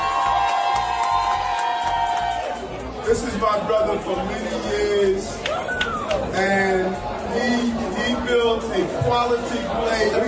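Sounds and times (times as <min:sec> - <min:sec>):
audience applause: 0:00.0 - 0:02.6
speech: 0:03.1 - 0:05.8, 0:06.4 - 0:10.2.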